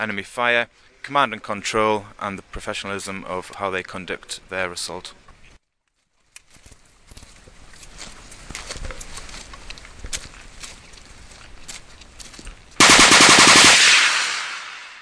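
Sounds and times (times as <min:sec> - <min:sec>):
speech: 0:00.0 - 0:05.2
scattered gunfire cracks and pops: 0:12.8 - 0:14.8
overhead machine gun fire: 0:12.8 - 0:15.0.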